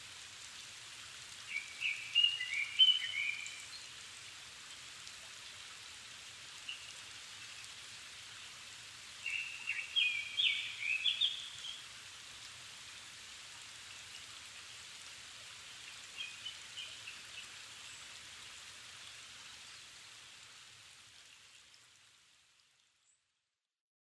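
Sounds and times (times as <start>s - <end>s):
constant background hiss: 0.0s - 23.2s
Japanese thrush singing: 1.5s - 3.7s, 9.3s - 11.8s.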